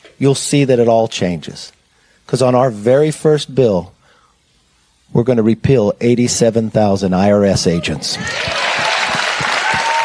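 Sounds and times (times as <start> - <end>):
speech: 0.2 - 4.0, 5.1 - 8.6
crowd cheers: 7.8 - 10.0
crowd applause at political speech: 8.2 - 10.0.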